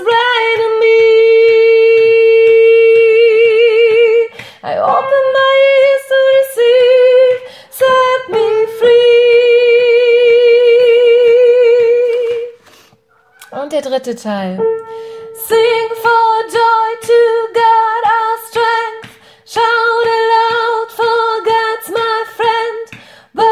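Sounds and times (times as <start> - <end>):
soprano singing: 0.0 - 12.6, 14.6 - 23.5.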